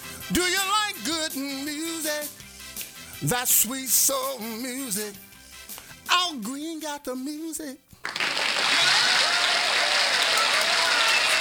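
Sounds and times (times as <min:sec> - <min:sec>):
speech: 0:00.3 - 0:02.4, 0:03.2 - 0:05.3, 0:06.2 - 0:08.0
applause button sound effect: 0:08.0 - 0:11.3.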